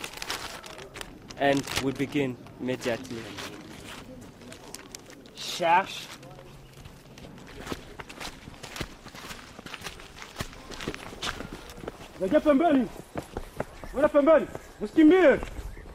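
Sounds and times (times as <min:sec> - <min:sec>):
speech: 0:01.4 - 0:03.5, 0:05.6 - 0:06.1, 0:12.2 - 0:13.0, 0:14.0 - 0:15.5
park rangers jogging through a forest: 0:07.2 - 0:15.9.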